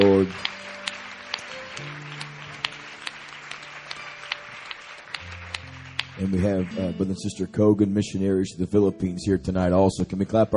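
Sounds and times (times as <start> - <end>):
audience clapping hands: 0.0 - 7.2
speech: 0.2 - 0.6, 1.8 - 2.0, 6.2 - 10.5.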